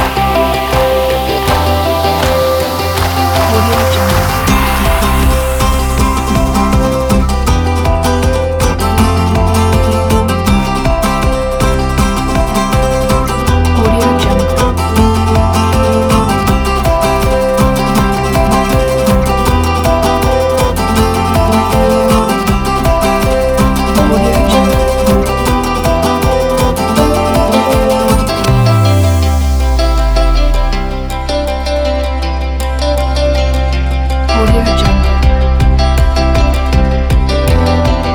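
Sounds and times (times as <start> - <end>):
corporate folk music: 0.0 - 38.1.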